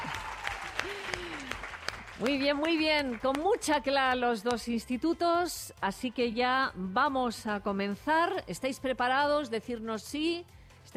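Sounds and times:
audience applauding: 0:00.0 - 0:03.4
speech: 0:02.2 - 0:10.9.

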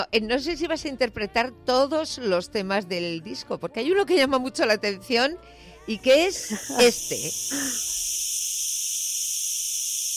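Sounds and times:
speech: 0:00.0 - 0:08.3
cicadas chirping: 0:06.2 - 0:10.1.

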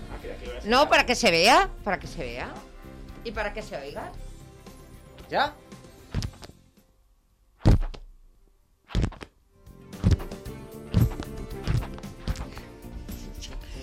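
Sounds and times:
speech: 0:00.6 - 0:04.3, 0:05.3 - 0:05.7
book pages flipping: 0:06.1 - 0:06.6, 0:08.9 - 0:09.4, 0:10.0 - 0:12.7.

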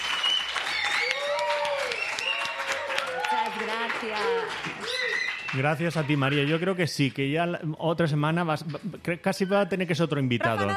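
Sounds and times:
audience applause: 0:00.0 - 0:07.1
speech: 0:04.0 - 0:10.7.

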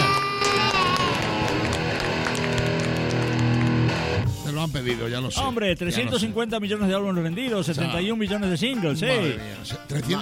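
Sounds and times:
shouts and whoops: 0:00.0 - 0:01.8
crowd cheering and clapping: 0:00.0 - 0:04.3
speech: 0:04.7 - 0:10.2.

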